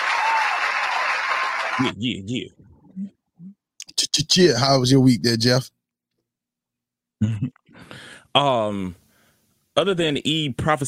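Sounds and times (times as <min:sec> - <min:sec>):
round of applause: 0:00.0 - 0:01.9
speech: 0:01.8 - 0:03.6, 0:04.2 - 0:05.8, 0:07.2 - 0:09.0, 0:09.8 - 0:10.8.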